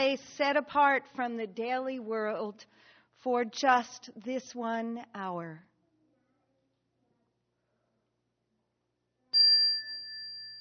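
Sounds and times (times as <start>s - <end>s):
speech: 0.0s - 5.7s
chime being struck: 9.4s - 10.5s.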